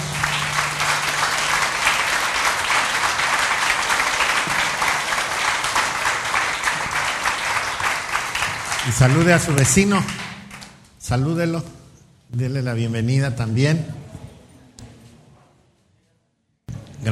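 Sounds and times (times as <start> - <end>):
faint low hum: 0.0 - 3.4
crowd applause: 0.0 - 10.8
speech: 8.9 - 10.2, 11.1 - 14.0.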